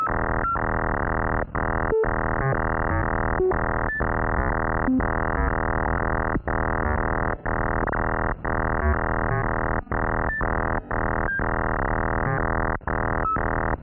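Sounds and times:
science fiction computer processing beeps in a lo-fi loop: 0.0 - 13.8.

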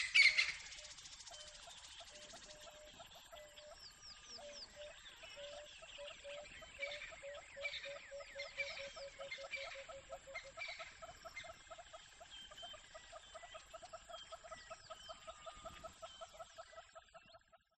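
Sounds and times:
crested francolin: 0.0 - 17.2.

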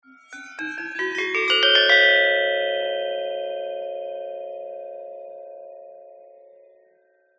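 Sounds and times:
small gender gamelan upward glissando: 0.0 - 3.4.

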